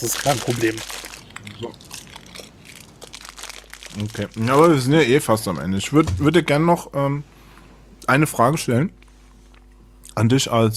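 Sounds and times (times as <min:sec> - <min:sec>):
speech: 0:00.0 - 0:01.8, 0:04.0 - 0:07.3, 0:08.1 - 0:09.0, 0:10.2 - 0:10.7
faint crunching of a leftover Christmas spiced almond being eaten: 0:00.0 - 0:05.3
plastic bag crinkling: 0:00.0 - 0:05.3.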